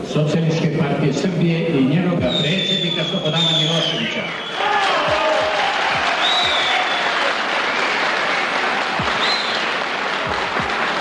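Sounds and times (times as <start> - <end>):
speech: 0.1 - 4.9
crowd applause at a political meeting: 4.2 - 10.9.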